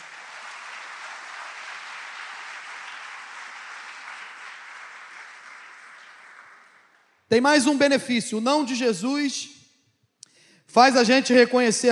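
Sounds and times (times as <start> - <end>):
audience applause: 0.0 - 7.2
speech: 7.3 - 9.6, 10.7 - 11.9.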